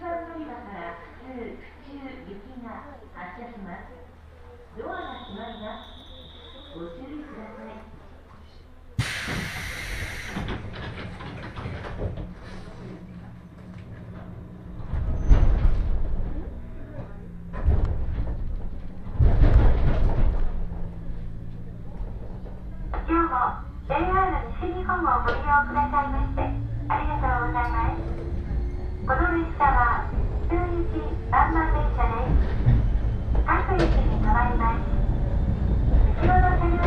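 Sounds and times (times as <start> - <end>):
Fukuen Line train low rumble: 0.0 - 36.8
voices talking on a Fukuen Line train: 3.8 - 8.2, 22.4 - 35.2
brief tone: 5.0 - 7.0.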